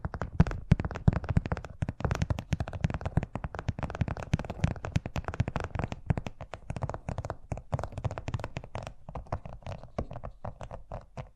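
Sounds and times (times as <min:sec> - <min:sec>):
fast tapping: 0:00.0 - 0:11.3.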